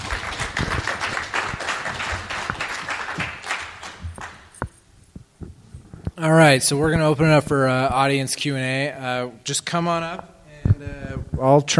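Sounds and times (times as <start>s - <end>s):
audience round of applause: 0.0s - 4.6s
speech: 6.2s - 11.7s.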